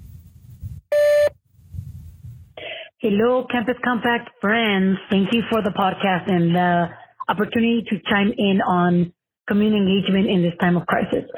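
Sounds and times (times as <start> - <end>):
voicemail message tone beep: 0.9 - 1.3
speech: 3.0 - 11.3.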